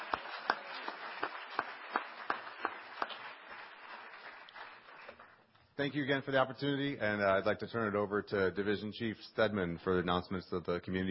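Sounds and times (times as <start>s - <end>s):
round of applause: 0.0s - 5.5s
speech: 5.8s - 11.0s.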